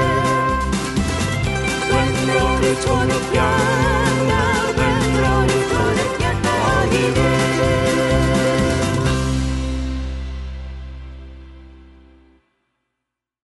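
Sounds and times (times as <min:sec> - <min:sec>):
harmony vocals: 0:00.0 - 0:00.9, 0:01.7 - 0:09.3
square dance music: 0:00.0 - 0:11.1.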